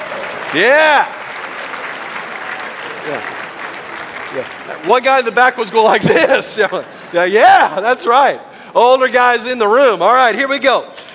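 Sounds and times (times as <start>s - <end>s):
audience applause: 0.0s - 7.3s
speech: 0.5s - 1.2s, 3.0s - 3.4s, 4.3s - 11.0s.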